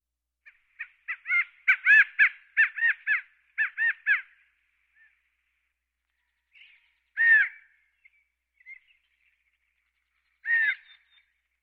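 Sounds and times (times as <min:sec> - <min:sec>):
California quail calls with chattering run of notes: 0:00.8 - 0:04.4, 0:07.2 - 0:07.6, 0:10.4 - 0:11.2.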